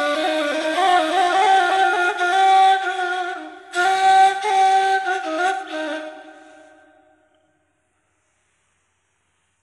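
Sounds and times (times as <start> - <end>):
ney flute solo: 0.0 - 7.2.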